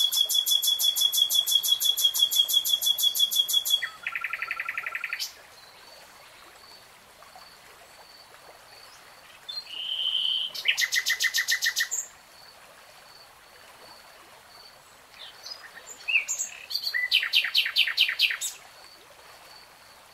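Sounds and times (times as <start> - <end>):
nightingale singing: 0.0 - 5.4, 9.6 - 12.0, 15.2 - 18.6.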